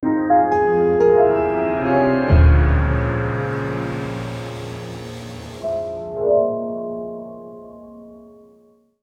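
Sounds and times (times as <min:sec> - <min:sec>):
fairy tale transition: 0:00.8 - 0:07.4.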